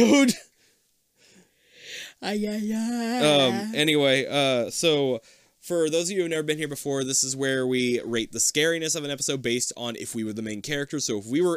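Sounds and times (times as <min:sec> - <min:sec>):
speech: 0:00.0 - 0:00.5, 0:02.2 - 0:11.5
person yawning: 0:02.8 - 0:03.7.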